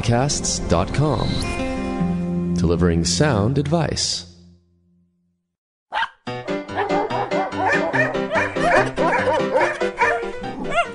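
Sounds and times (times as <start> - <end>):
speech: 0.0 - 1.6, 2.6 - 4.3
dog barking and yipping: 5.9 - 10.9.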